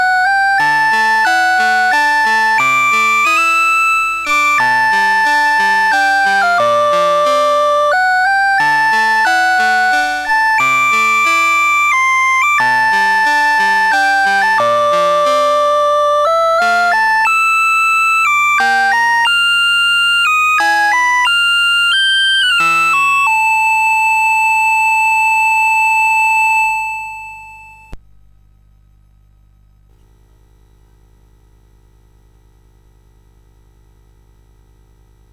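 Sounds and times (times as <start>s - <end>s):
chiptune theme on CSG8580 sound chip: 0.0s - 28.0s.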